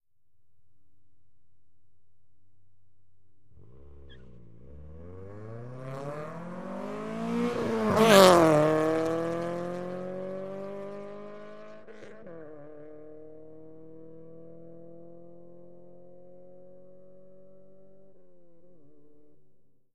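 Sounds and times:
Acura Integra fast pass-by and accelerating away: 3.6s - 17.5s.

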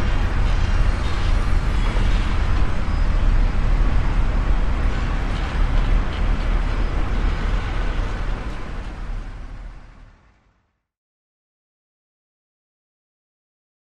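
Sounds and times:
construction site noise in a big city: 0.0s - 10.7s.

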